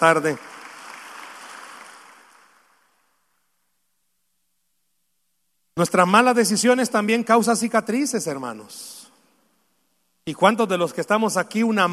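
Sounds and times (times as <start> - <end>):
speech: 0.0 - 0.5, 5.8 - 9.1, 10.3 - 11.9
audience applause: 0.0 - 3.0.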